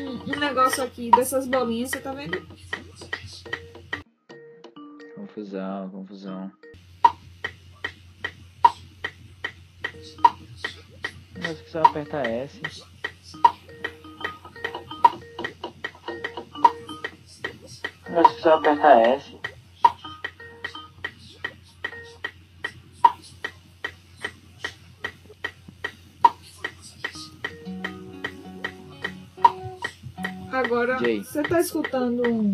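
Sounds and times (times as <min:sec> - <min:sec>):
metronome ticking: 0:00.0 - 0:02.5, 0:09.8 - 0:10.4, 0:11.4 - 0:20.9, 0:27.2 - 0:32.5
speech: 0:00.0 - 0:03.6, 0:05.2 - 0:06.8, 0:11.4 - 0:12.9, 0:18.1 - 0:19.3, 0:31.1 - 0:32.5.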